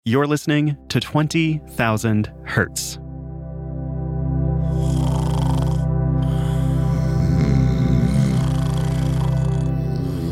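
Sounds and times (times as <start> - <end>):
speech: 0.0 - 3.0
person snoring: 4.6 - 10.3.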